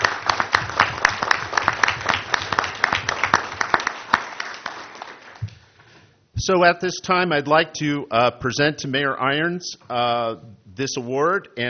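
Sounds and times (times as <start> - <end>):
crowd applause: 0.0 - 5.5
speech: 6.4 - 11.6.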